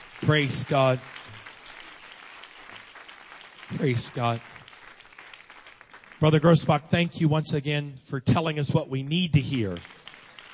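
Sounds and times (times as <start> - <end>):
audience applause: 0.0 - 7.2, 9.4 - 10.5
speech: 0.2 - 1.2, 3.7 - 4.6, 6.2 - 10.0.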